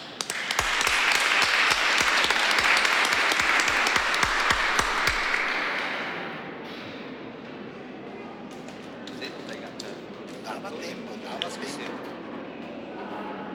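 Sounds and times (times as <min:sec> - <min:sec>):
audience applause: 0:00.0 - 0:06.4.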